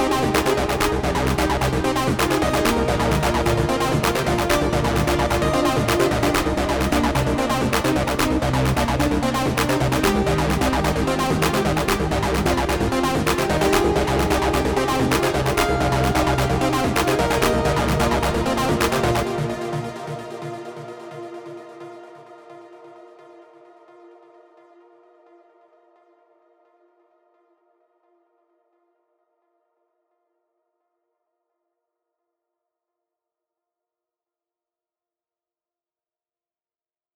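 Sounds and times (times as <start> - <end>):
acid trance music: 0.0 - 24.6.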